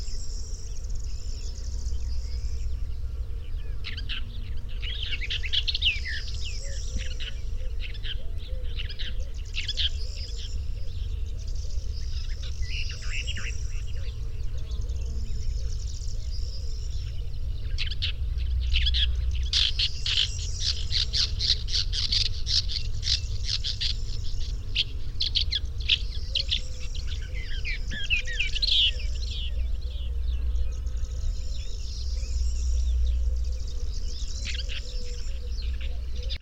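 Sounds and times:
woodchat shrike calling: 0:00.0 - 0:36.4.

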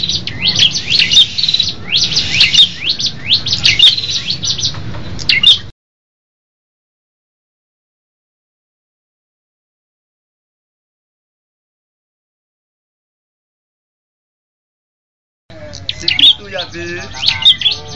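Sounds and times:
red-headed tailorbirds singing together as a group: 0:00.0 - 0:05.7, 0:15.5 - 0:17.9.

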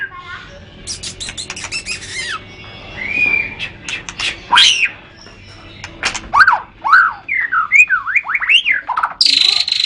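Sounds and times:
white-rumped shama song: 0:00.9 - 0:05.3, 0:06.4 - 0:09.8.

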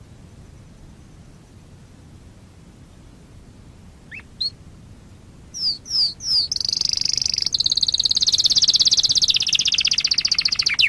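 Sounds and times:
canary song whistles and trill: 0:05.6 - 0:10.8.

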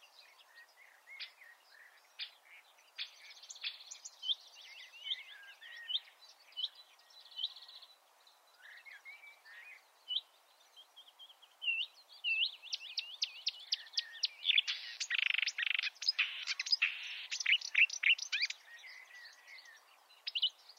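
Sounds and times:
marsh warbler song: 0:00.0 - 0:20.7.

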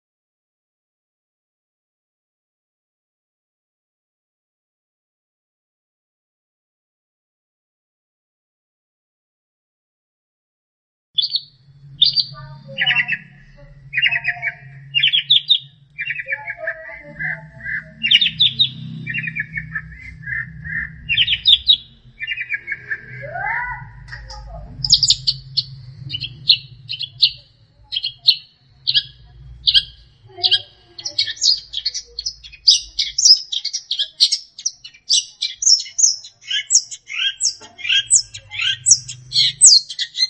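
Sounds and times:
long-tailed shrike song: 0:11.2 - 0:40.2
low hum: 0:11.4 - 0:33.2.

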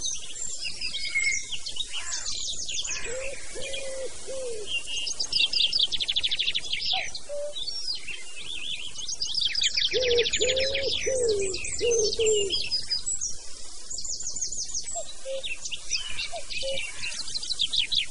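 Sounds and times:
cuckoo in a forest: 0:00.0 - 0:05.9, 0:06.8 - 0:07.7, 0:09.5 - 0:12.8, 0:14.8 - 0:18.0.

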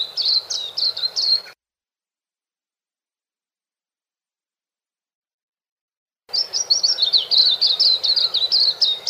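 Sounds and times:
white-eye sweet high twittering with slurred buzzy notes: 0:00.0 - 0:01.6, 0:06.3 - 0:09.0.

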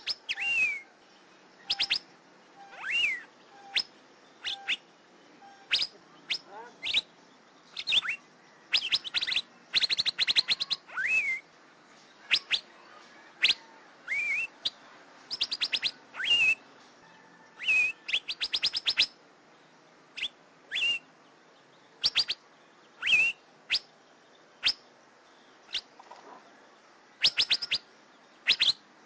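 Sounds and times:
Asian fairy-bluebird sharp whistles: 0:00.0 - 0:00.9, 0:01.7 - 0:02.0, 0:02.6 - 0:04.8, 0:05.4 - 0:07.1, 0:07.8 - 0:11.4, 0:13.4 - 0:14.5, 0:15.3 - 0:16.6, 0:17.6 - 0:19.1, 0:20.2 - 0:21.0, 0:22.0 - 0:22.4, 0:23.0 - 0:23.9, 0:27.2 - 0:27.8, 0:28.5 - 0:28.8.

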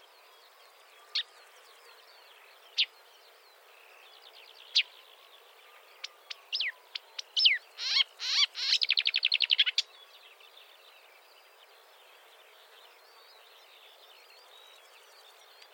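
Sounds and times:
marsh warbler chattering song: 0:01.0 - 0:15.7.

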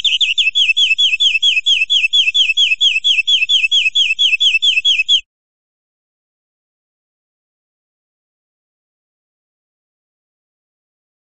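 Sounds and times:
European greenfinch buzzy trill: 0:00.0 - 0:05.2.

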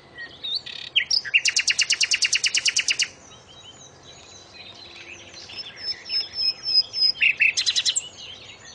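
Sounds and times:
common nightingale singing: 0:00.0 - 0:08.7.

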